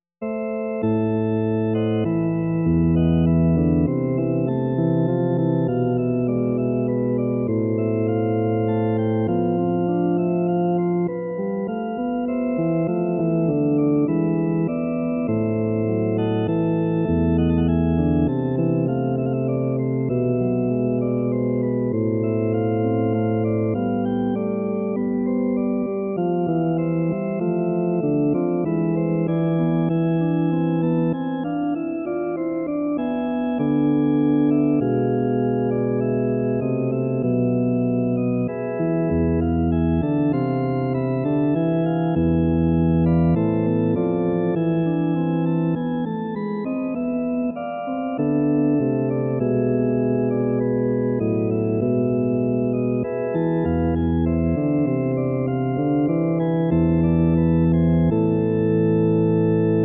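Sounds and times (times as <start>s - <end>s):
sarabande on grand organ: 0.2s - 59.8s.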